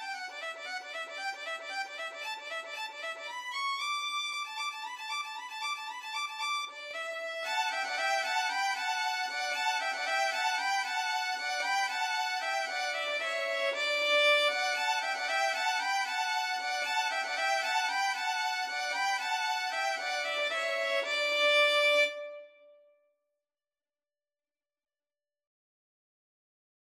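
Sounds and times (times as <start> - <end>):
violin trio playing: 0.0 - 22.4.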